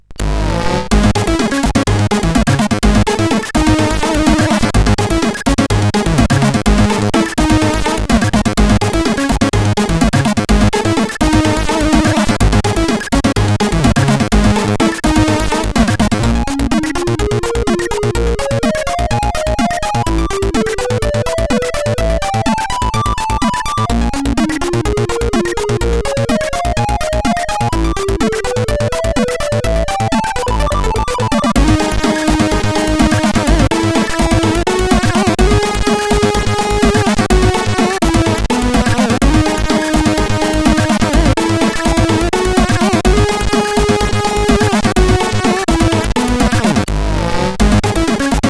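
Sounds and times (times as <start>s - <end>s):
SID CSG8580R5 chip music: 0.2s - 48.4s.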